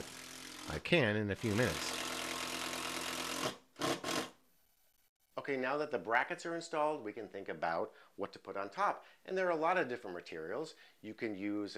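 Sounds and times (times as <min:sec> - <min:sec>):
speech: 0:00.8 - 0:01.9, 0:05.5 - 0:11.7
power drill pre-drilling screw holes for shelf brackets: 0:01.9 - 0:04.3.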